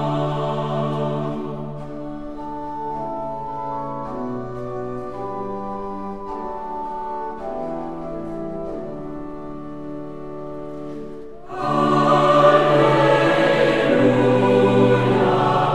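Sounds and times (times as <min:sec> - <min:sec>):
vocal ensemble singing an alleluia: 0:00.0 - 0:02.0, 0:11.4 - 0:15.7.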